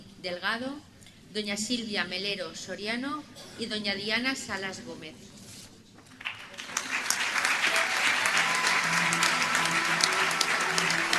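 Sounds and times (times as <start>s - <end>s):
speech: 0.2s - 5.4s
audience applause: 6.2s - 11.1s.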